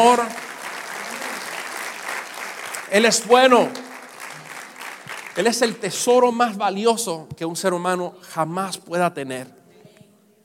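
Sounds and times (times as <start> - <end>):
speech: 0.0 - 0.4, 2.9 - 3.8, 5.4 - 9.6
crowd clapping: 0.0 - 6.5.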